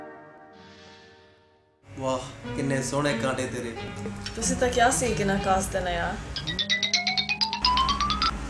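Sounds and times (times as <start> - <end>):
speech: 2.1 - 6.7
mobile phone ringtone of rising electronic beeps: 6.4 - 8.4.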